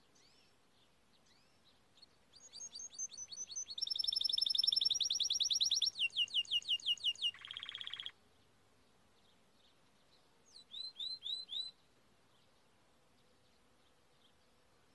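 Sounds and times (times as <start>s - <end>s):
canary singing trills: 0.1s - 8.2s, 9.2s - 11.8s.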